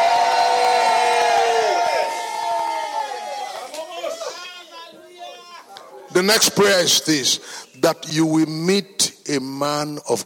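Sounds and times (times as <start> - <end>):
crowd shouting in unison: 0.0 - 5.7
speech: 6.2 - 10.2.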